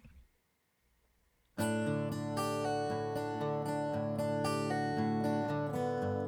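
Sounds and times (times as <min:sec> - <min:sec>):
acoustic guitar with waveshaper and EQ: 0:01.6 - 0:06.2.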